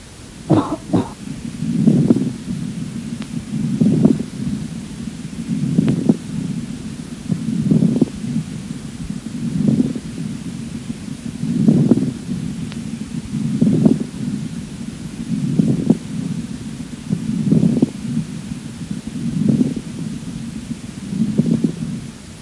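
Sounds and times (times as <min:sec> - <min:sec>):
moist crackling rales on chest auscultation after coughing: 0:00.0 - 0:22.3
harsh rhythmic breathing: 0:00.5 - 0:01.2.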